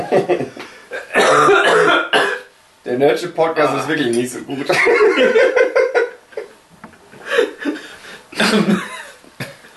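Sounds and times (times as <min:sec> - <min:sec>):
laughter: 0:00.0 - 0:00.6, 0:04.7 - 0:06.6
speech: 0:00.1 - 0:01.6, 0:02.9 - 0:05.8
person coughing after swallowing tea the wrong way: 0:00.9 - 0:02.5, 0:08.4 - 0:09.0.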